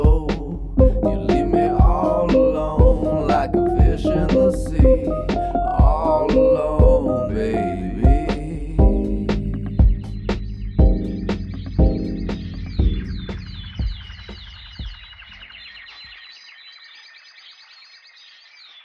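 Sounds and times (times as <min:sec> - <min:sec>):
blues band playing: 0:00.0 - 0:13.4.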